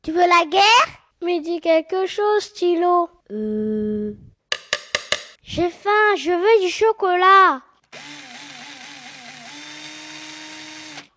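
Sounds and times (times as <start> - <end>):
speech: 0.0 - 4.2, 5.5 - 8.0
power drill drilling holes: 7.8 - 11.1.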